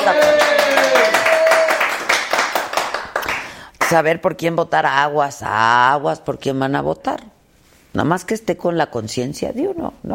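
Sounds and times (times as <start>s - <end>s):
speech: 0.0s - 0.4s, 3.9s - 7.3s, 7.9s - 10.1s
hands clapping: 0.0s - 4.0s.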